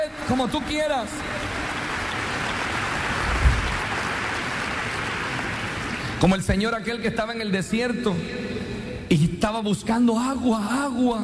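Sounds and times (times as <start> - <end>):
audience clapping loudly: 0.0 - 6.4
speech: 0.3 - 1.8, 6.2 - 11.2.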